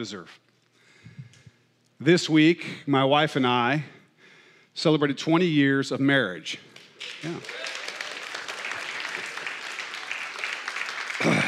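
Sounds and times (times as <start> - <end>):
speech: 0.0 - 0.5, 2.0 - 4.0, 4.8 - 7.8
audience clapping: 6.7 - 11.4.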